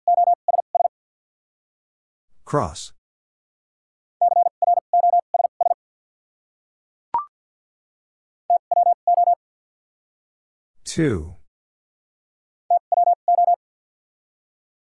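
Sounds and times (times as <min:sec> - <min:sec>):
fast Morse code beeps at 50 wpm: 0:00.0 - 0:00.9, 0:04.2 - 0:05.8, 0:08.5 - 0:09.4, 0:12.7 - 0:13.6
speech: 0:02.5 - 0:03.0, 0:10.9 - 0:11.4.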